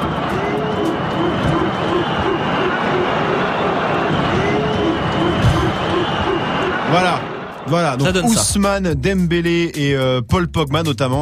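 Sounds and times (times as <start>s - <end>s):
stadium crowd making monkey chants: 0.0s - 7.0s
stadium crowd roaring: 0.0s - 8.4s
speech: 7.7s - 11.1s.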